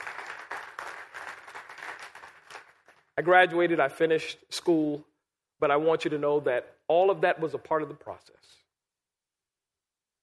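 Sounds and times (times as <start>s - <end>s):
crowd applauding: 0.0s - 3.2s
speech: 3.2s - 8.6s.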